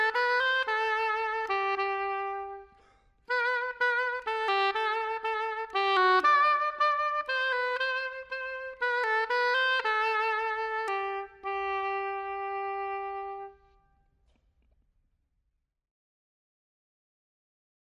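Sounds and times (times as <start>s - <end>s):
oboe: 0.0s - 13.9s.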